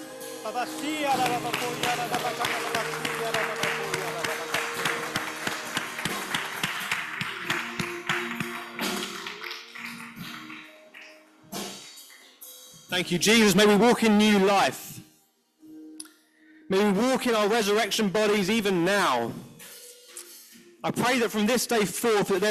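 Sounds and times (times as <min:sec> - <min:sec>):
speech: 0:00.4 - 0:04.5, 0:13.0 - 0:14.9, 0:16.7 - 0:19.4, 0:20.8 - 0:22.4
audience clapping hands: 0:00.8 - 0:12.3.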